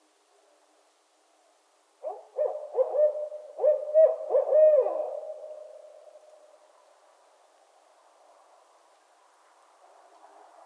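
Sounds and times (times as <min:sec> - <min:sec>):
barred owls hooting: 0:02.0 - 0:05.8.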